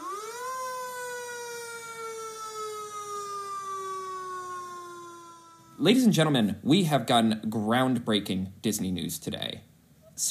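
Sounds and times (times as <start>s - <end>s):
alarm siren wailing: 0.0s - 6.0s
speech: 5.8s - 10.3s.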